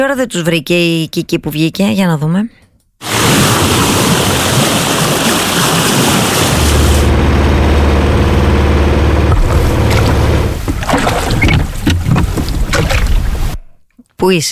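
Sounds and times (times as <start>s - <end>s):
speech: 0.0s - 3.4s, 14.2s - 14.4s
boat moving on the sea: 3.0s - 13.6s.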